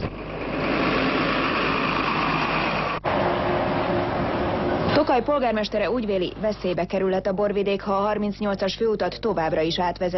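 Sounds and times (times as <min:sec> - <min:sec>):
heavy trucks passing on a main road through Tokaj: 0:00.0 - 0:05.8
speech: 0:05.1 - 0:10.1.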